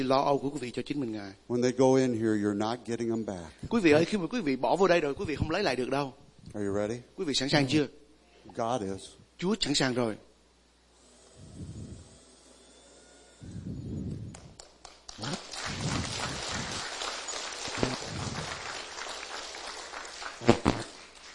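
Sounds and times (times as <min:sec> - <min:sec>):
speech: 0:00.0 - 0:10.3
congregation clapping during a church service: 0:14.3 - 0:21.3.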